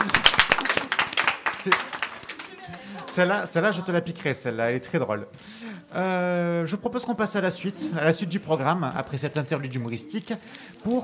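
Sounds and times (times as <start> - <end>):
clapping: 0.0 - 3.2
speech: 1.6 - 2.0, 3.2 - 11.0.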